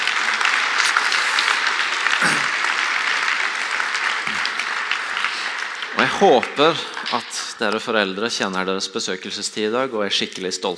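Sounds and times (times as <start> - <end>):
audience applause: 0.0 - 8.4
speech: 6.0 - 10.7.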